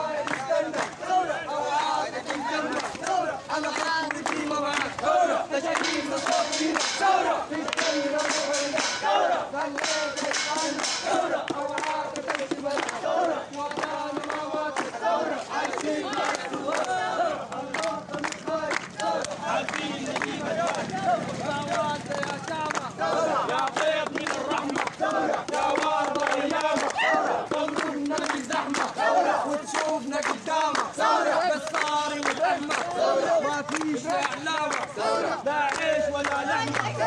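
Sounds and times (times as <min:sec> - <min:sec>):
protesters at a mass march chanting slogans: 0:00.0 - 0:37.0.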